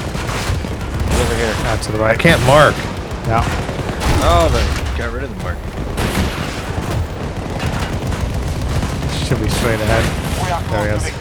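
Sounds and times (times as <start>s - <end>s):
gunfire in a video game battle: 0.0s - 11.2s
heavy booming blasts in a video game battle: 0.0s - 11.2s
speech: 1.3s - 6.4s, 9.3s - 11.2s.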